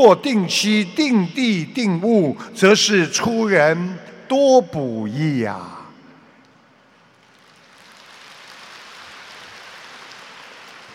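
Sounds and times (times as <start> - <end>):
speech: 0.0 - 5.8
audience applauding: 7.2 - 10.9.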